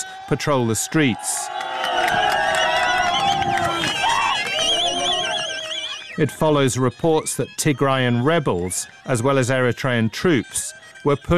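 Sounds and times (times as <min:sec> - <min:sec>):
residents of Adigrat cheering: 0:00.0 - 0:06.2
speech: 0:00.3 - 0:02.2, 0:06.2 - 0:11.3.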